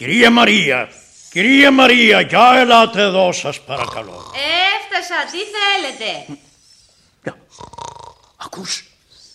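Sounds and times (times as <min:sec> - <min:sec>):
speech: 0:00.0 - 0:06.5, 0:08.5 - 0:08.9
person snoring: 0:03.7 - 0:04.5, 0:07.5 - 0:08.4.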